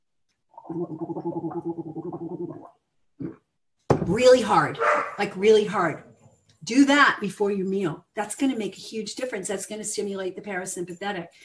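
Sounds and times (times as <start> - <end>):
person gargling water before a meal: 0.5 - 3.6
speech: 0.7 - 2.8, 4.2 - 6.1, 6.7 - 11.4.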